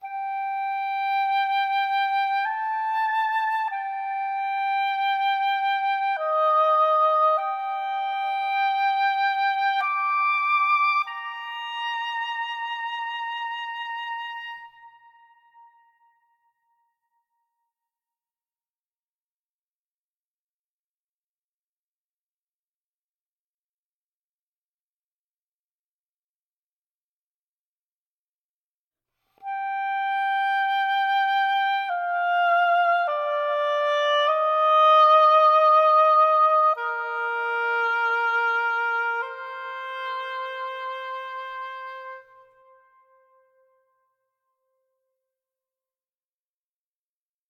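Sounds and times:
ambient oboe: 0:00.0 - 0:16.5, 0:29.4 - 0:44.0.

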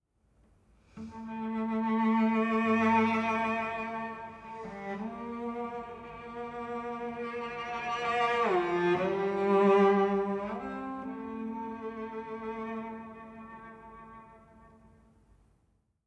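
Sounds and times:
savannah-themed music: 0:00.9 - 0:15.4.

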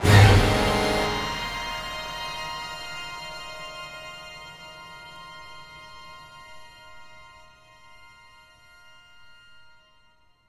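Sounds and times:
string chase music: 0:00.0 - 0:03.4.

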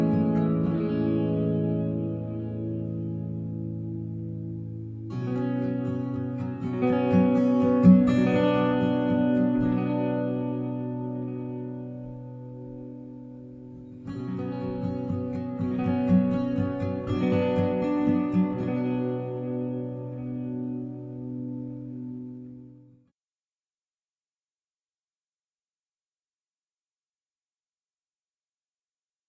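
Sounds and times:
ambient guitar: 0:00.0 - 0:23.1.

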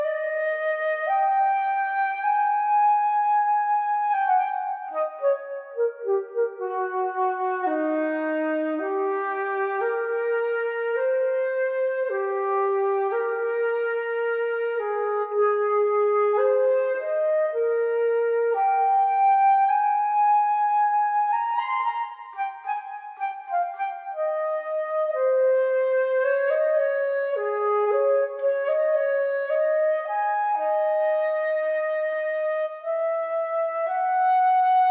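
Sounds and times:
flute: 0:00.0 - 0:34.8.

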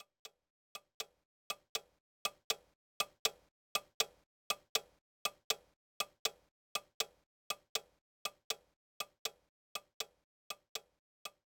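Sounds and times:
clock: 0:00.0 - 0:11.4.

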